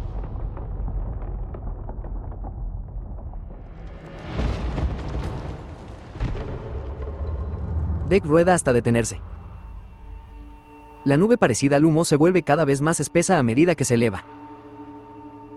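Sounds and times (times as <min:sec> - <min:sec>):
crackling ice debris: 0:00.0 - 0:08.5
creature exploding into ice particles: 0:00.0 - 0:10.4
speech: 0:08.1 - 0:09.4, 0:11.0 - 0:14.4.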